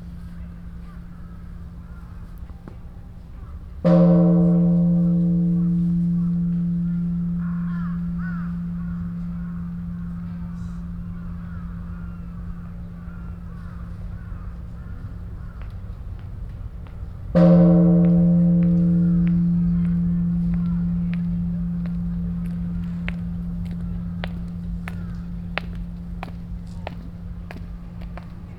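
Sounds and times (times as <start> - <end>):
bells of time ringing in Ueno: 3.9 - 14.2, 17.4 - 28.5.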